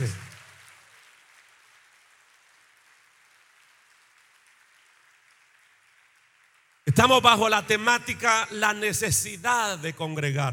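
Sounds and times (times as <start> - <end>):
audience applause: 0.0 - 8.3
speech: 7.0 - 10.5.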